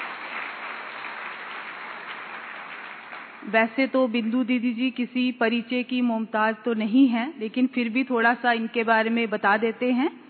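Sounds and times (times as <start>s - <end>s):
loud applause: 0.0s - 3.5s
speech: 3.4s - 10.2s.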